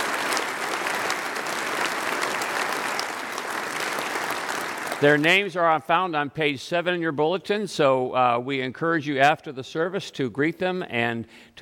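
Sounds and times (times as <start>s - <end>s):
audience applause: 0.0s - 5.3s
speech: 5.0s - 11.6s.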